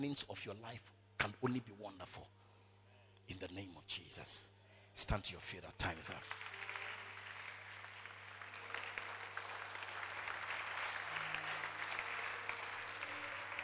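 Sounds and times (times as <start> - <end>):
speech: 0.0 - 2.4, 3.3 - 6.7
audience clapping: 5.8 - 13.6.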